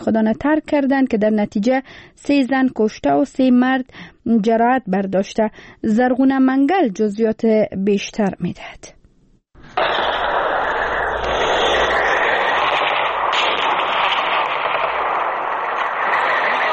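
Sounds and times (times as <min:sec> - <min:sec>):
speech: 0:00.0 - 0:09.0, 0:09.8 - 0:10.3
heavy gunfire from clashes between Afghan and Pakistani forces in Barikot, Kunar: 0:09.8 - 0:16.7.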